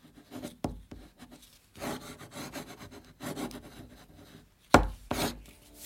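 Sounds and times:
pen writing a signature on paper: 0.0 - 5.4.

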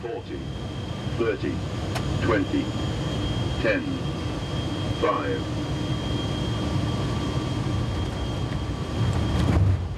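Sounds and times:
speech: 0.0 - 3.0, 3.6 - 4.2, 5.0 - 5.6
Luftwaffe aircraft engine drone landing in sand: 0.0 - 9.9.

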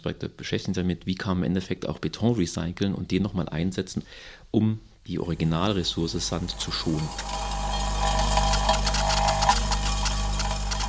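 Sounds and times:
speech: 0.0 - 7.5
Fraunhofer prototype machine sorting building materials from demolition: 5.2 - 10.8.

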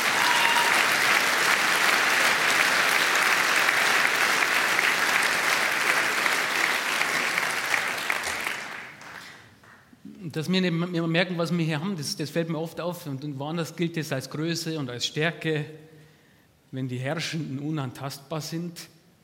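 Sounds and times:
audience applause: 0.0 - 9.5
speech: 10.3 - 15.9, 16.7 - 19.0.

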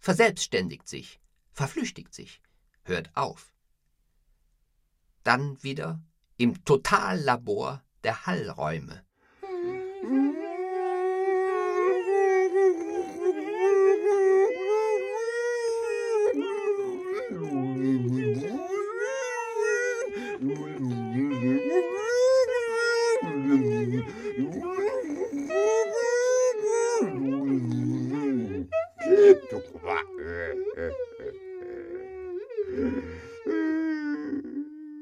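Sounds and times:
speech: 0.0 - 3.5, 5.2 - 9.1, 10.0 - 10.4
dog howling: 9.6 - 35.0.

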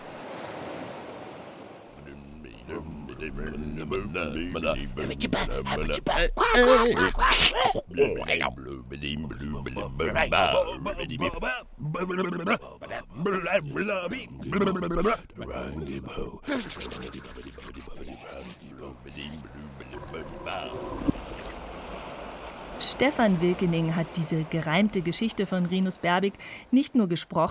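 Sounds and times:
voice imitating sea monsters singing: 2.0 - 21.0
speech: 2.7 - 17.4, 22.8 - 27.5.

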